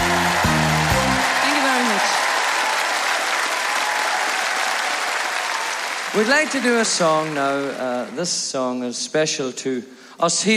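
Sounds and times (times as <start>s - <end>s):
audience applause welcoming a singer onto the stage: 0.0s - 8.5s
speech: 6.2s - 10.5s.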